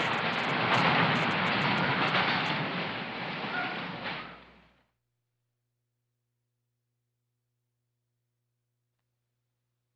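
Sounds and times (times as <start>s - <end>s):
rollercoaster: 0.0s - 4.8s.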